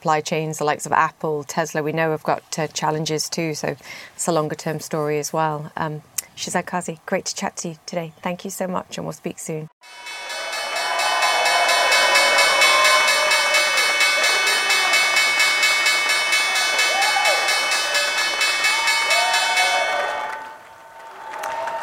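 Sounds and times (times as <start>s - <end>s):
speech: 0.0s - 10.1s
stock exchange opening bell ringing: 9.8s - 20.1s
crowd cheering and shouting: 9.9s - 21.8s.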